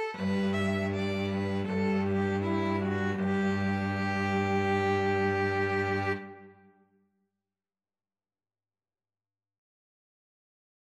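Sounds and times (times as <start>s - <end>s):
cello: 0.0s - 6.7s
two violins: 0.0s - 6.7s.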